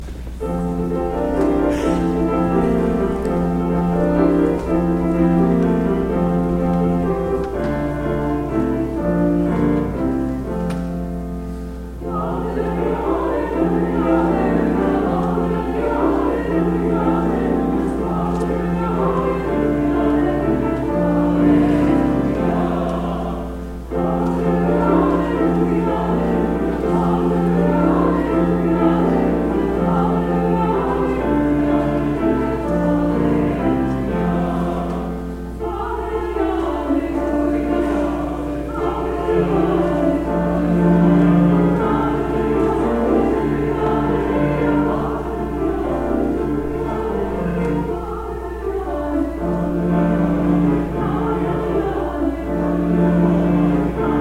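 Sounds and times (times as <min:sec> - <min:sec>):
processional alleluia hymn: 0:00.0 - 0:54.2.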